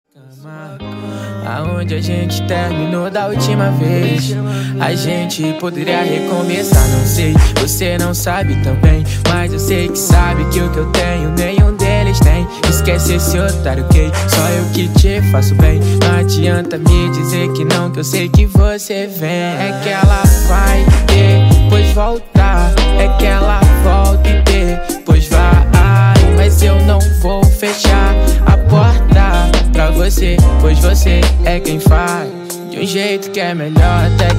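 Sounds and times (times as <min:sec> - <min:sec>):
acoustic poetry music: 0:00.1 - 0:34.3.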